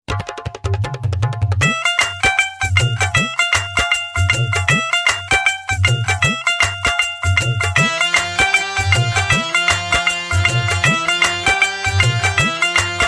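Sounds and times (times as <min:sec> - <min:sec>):
tumbi playing: 0:00.1 - 0:13.0.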